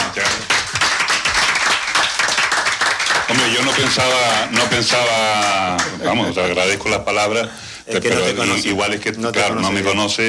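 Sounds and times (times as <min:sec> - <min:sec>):
audience applause: 0:00.0 - 0:06.0
speech: 0:03.5 - 0:10.2.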